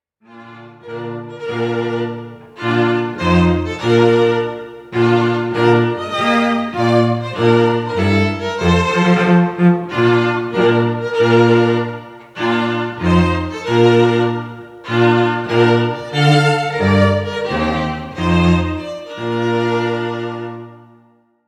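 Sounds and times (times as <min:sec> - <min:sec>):
bridal march music: 0:00.5 - 0:21.0.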